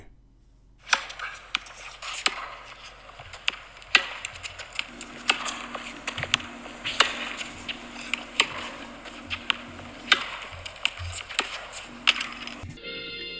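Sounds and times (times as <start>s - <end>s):
tennis balls tumbling in a clothes dryer: 0.8s - 12.8s
clothes dryer low motor hum: 4.8s - 12.8s.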